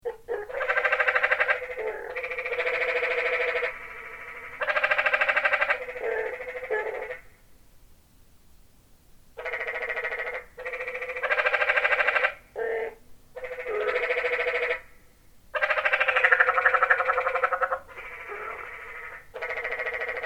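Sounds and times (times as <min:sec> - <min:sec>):
tree frogs trilling chorus in Zion Canyon: 0:00.0 - 0:07.4, 0:09.4 - 0:20.2.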